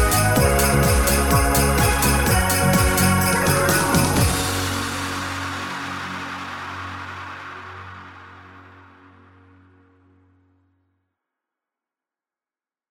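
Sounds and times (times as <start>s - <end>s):
Christmas square dance rhythm track: 0.0s - 4.9s
bells: 0.0s - 7.8s.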